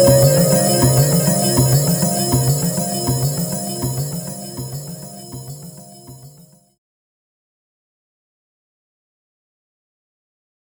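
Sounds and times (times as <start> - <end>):
Eventide H3000 synth drums: 0.0 - 6.4.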